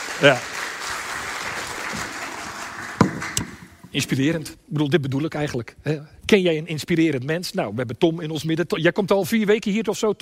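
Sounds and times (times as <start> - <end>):
audience applause: 0.0 - 3.9
speech: 0.2 - 0.5, 3.9 - 10.1.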